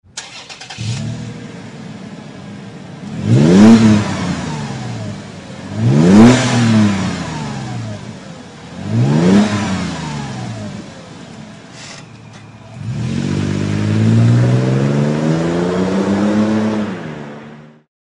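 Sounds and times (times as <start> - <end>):
Magnaflow exhaust system: 0.2 - 17.0.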